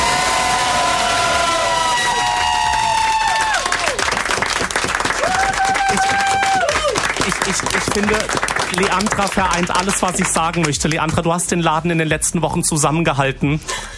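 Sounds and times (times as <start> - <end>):
people cheering: 0.0 - 10.9
audience applause: 0.0 - 11.2
speech: 8.0 - 13.9.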